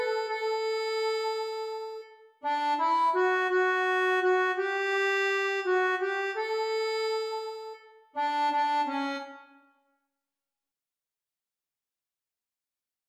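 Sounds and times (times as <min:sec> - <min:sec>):
accordion: 0:00.0 - 0:09.6.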